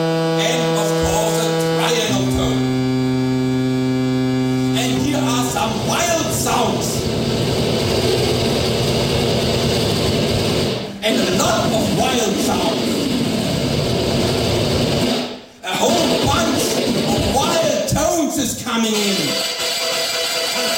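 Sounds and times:
synthesized sawtooth tone: 0.0 - 17.6, 18.9 - 20.7.

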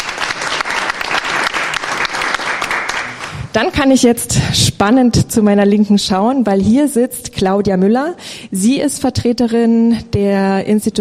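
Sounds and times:
audience applause: 0.0 - 3.5
speech: 3.6 - 10.9.

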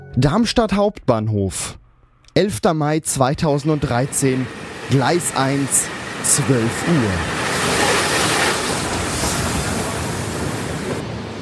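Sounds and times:
speech: 0.2 - 1.8, 2.4 - 7.4
special train at Darmstadt Hauptbahnhof platform rumbling and hissing: 3.1 - 11.4.

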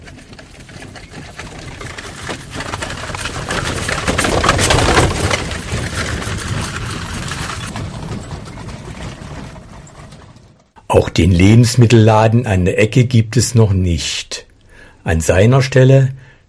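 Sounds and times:
horse-drawn cart hooves clattering on a country road: 0.0 - 11.6
creaking wooden cart wheels: 0.0 - 13.2
speech: 11.2 - 14.4, 15.0 - 16.3.

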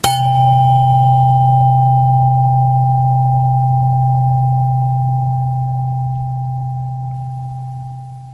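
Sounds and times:
tuning fork tone C at 128 Hz: 0.0 - 8.3.

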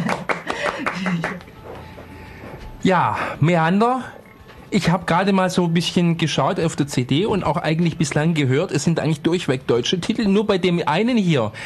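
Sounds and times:
hand clapping: 0.0 - 1.8
speech: 2.8 - 11.6.

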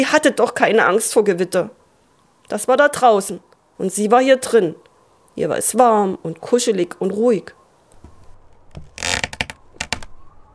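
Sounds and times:
speech: 0.0 - 1.8, 2.5 - 7.6
creaking outside the bedroom: 7.9 - 10.5.

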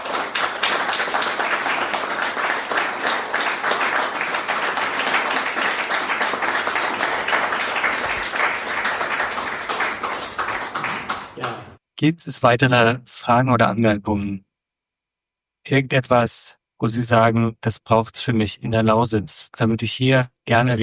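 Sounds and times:
audience applause: 0.0 - 11.8
speech: 12.0 - 14.5, 15.7 - 20.8.

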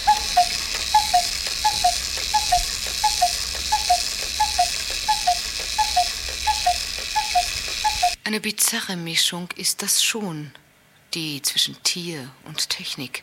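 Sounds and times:
cuckoo clock calling: 0.0 - 8.2
speech: 8.3 - 13.2.

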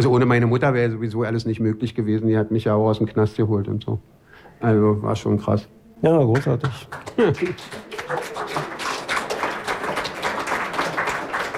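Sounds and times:
speech: 0.0 - 8.6
crowd applauding: 6.4 - 11.5.

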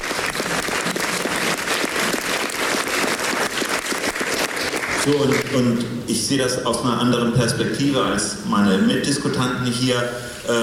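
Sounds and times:
audience applause: 0.0 - 5.5
speech: 5.0 - 10.6.

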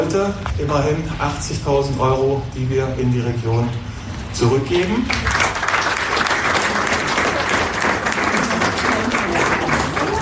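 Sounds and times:
speech: 0.0 - 5.5
audience applause: 5.0 - 10.2.

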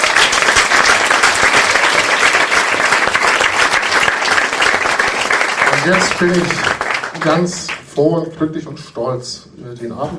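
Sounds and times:
audience applause: 0.0 - 7.8
speech: 5.8 - 10.1.

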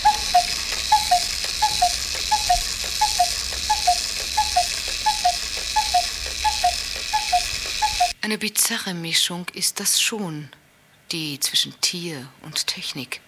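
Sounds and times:
cuckoo clock ticking and calling: 0.0 - 8.2
speech: 8.3 - 13.2.

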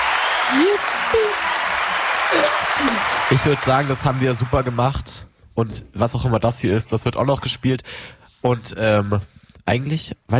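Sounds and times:
applause: 0.0 - 5.2
speech: 0.5 - 10.3.

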